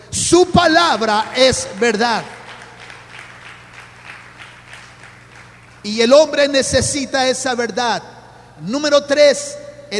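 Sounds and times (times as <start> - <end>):
speech: 0.1 - 2.4, 5.8 - 9.9
applause: 0.5 - 6.1.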